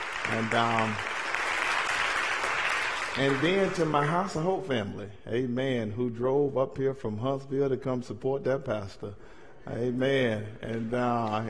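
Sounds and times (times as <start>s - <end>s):
audience hand clapping: 0.0s - 4.4s, 10.7s - 11.4s
speech: 0.3s - 1.1s, 3.2s - 11.4s.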